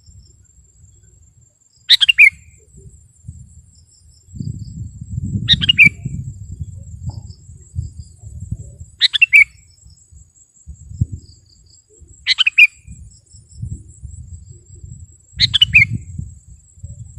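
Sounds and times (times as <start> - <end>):
sooty-headed bulbul singing: 1.8 - 2.9, 4.3 - 10.0, 10.9 - 13.7, 14.8 - 17.1.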